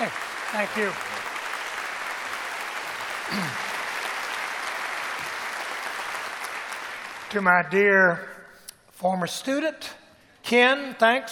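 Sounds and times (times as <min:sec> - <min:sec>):
speech: 0:00.0 - 0:01.2, 0:03.3 - 0:03.6, 0:07.3 - 0:08.3, 0:09.0 - 0:11.3
church conference audience applause welcoming a bishop: 0:00.0 - 0:07.5.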